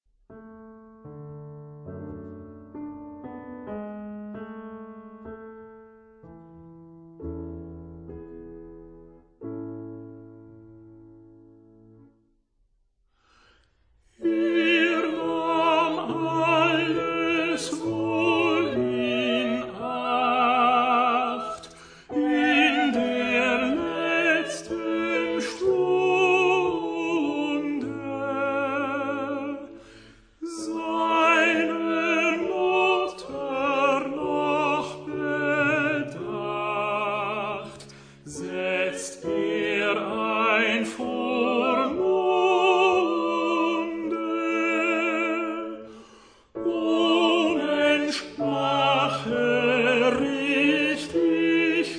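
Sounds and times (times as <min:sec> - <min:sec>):
tenor singing: 0:14.2 - 0:29.8, 0:30.4 - 0:45.8, 0:46.6 - 0:51.9.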